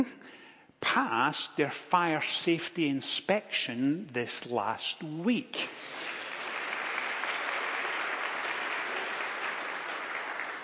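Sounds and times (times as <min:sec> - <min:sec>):
speech: 0:01.0 - 0:06.1
subdued audience applause: 0:05.7 - 0:10.6.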